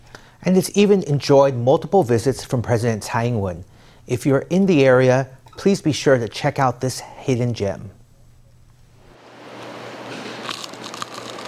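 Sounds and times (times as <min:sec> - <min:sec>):
speech: 0:00.4 - 0:08.0
fried lizard fish crackling when bitten: 0:10.3 - 0:11.4.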